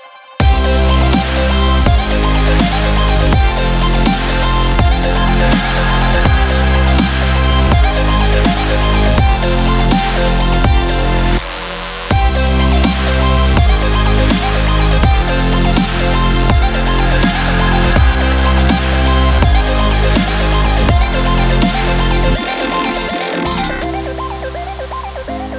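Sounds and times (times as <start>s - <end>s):
epic sport anthem dubstep music: 0.3s - 25.5s.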